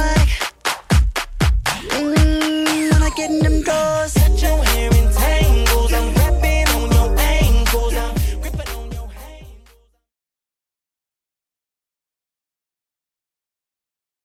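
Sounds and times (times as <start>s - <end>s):
Redrum drum machine beat: 0.0s - 9.8s.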